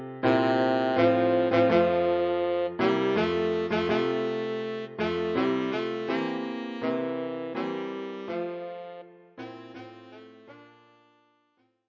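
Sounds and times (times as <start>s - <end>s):
tenor saxophone: 0.3s - 11.5s.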